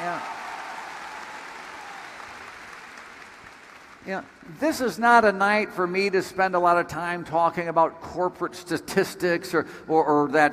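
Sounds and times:
crowd applauding: 0.0s - 4.6s
speech: 4.0s - 10.5s.

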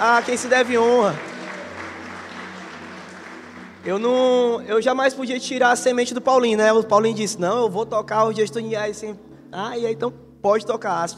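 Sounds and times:
speech: 0.0s - 1.3s, 3.8s - 11.1s
audience applauding: 0.0s - 4.4s.

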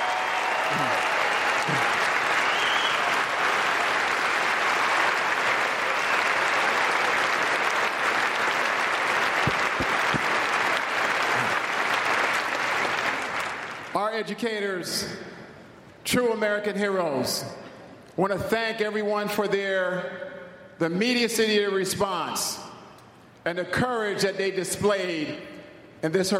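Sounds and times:
faint cheers: 0.0s - 4.0s
large crowd applauding: 0.0s - 14.0s
speech: 0.7s - 1.0s, 14.2s - 15.3s, 16.1s - 17.6s, 18.2s - 20.2s, 20.8s - 22.7s, 23.4s - 26.3s.

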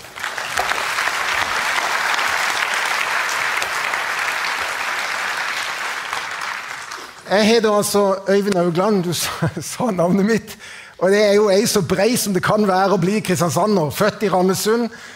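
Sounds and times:
crowd applause: 0.0s - 7.3s
speech: 7.3s - 15.1s
laughter: 9.2s - 9.9s.

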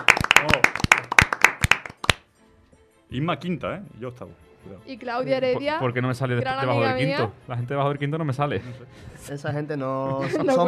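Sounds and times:
applause in a radio studio: 0.0s - 2.3s
speech: 3.1s - 10.6s
laughter: 10.1s - 10.6s.

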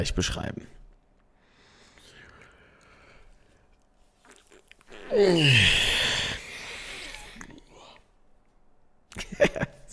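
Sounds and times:
suppressed yawn: 4.9s - 8.0s.

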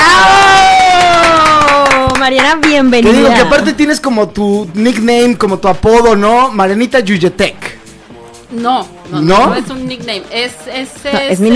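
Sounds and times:
audience applause: 0.0s - 2.9s
speech: 2.3s - 7.8s, 8.5s - 11.5s.

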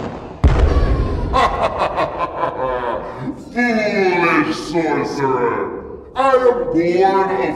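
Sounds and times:
firebolt spell blast with deep rumble: 0.0s - 2.2s
laughter: 1.1s - 5.1s
speech: 4.7s - 7.5s.

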